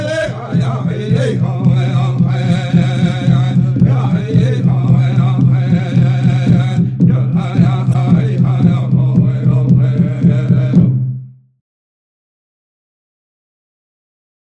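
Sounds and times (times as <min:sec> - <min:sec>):
Kiowa fast war dance music: 0:00.0 - 0:11.2.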